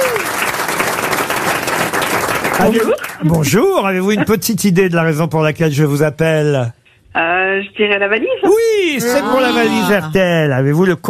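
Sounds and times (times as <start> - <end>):
studio audience applauding a caller on a radio game show: 0.0 - 3.6
speech: 2.6 - 11.0.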